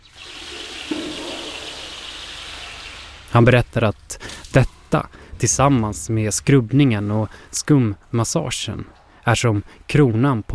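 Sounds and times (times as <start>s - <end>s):
cold water poured over a person: 0.0s - 3.3s
speech: 3.3s - 10.5s.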